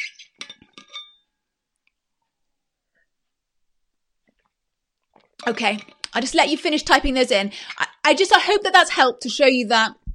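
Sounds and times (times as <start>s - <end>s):
glass clinking: 0.0s - 1.4s
speech: 5.4s - 10.0s.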